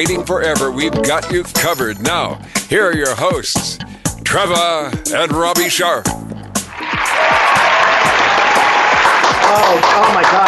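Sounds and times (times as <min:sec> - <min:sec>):
speech: 0:00.0 - 0:07.5, 0:09.5 - 0:10.4
applause: 0:06.7 - 0:10.4.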